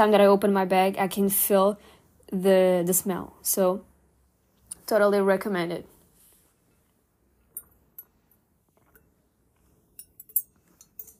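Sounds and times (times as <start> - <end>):
speech: 0.0 - 3.9, 4.9 - 5.9
glass clinks while drinking water: 10.0 - 11.1.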